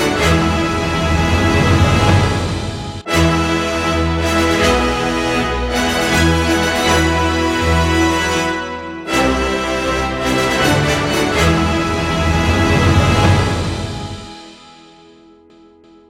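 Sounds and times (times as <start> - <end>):
fanfare for raising the flag: 0.0 - 14.9.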